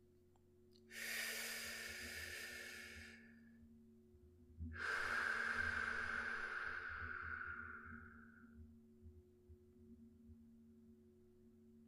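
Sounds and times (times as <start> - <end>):
deep forceful breathing during a guided relaxation exercise: 0.9 - 3.4, 4.8 - 8.5.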